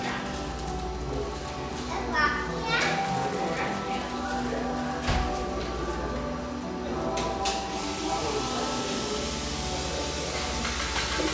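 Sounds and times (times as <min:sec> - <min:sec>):
children's voices in a cafe: 0:00.0 - 0:07.5
overlapping voices and chatter in a busy cafe in Portland: 0:00.0 - 0:11.3
clatters and clinks of dishes: 0:10.4 - 0:11.3.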